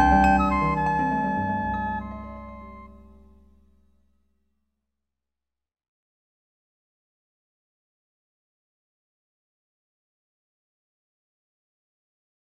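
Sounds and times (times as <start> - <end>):
changing rhythm: 0.0 - 3.0.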